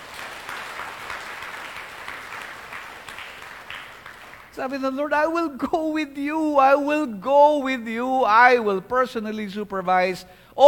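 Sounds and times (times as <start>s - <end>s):
congregation clapping during a church sermon: 0.0s - 5.5s
speech: 4.6s - 10.6s.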